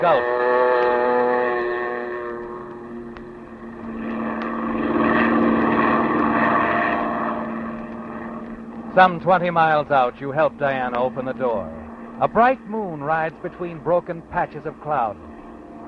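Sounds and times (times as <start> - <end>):
speech: 0.0 - 0.6, 9.0 - 15.3
seaplane engine skimming across water: 0.0 - 15.8.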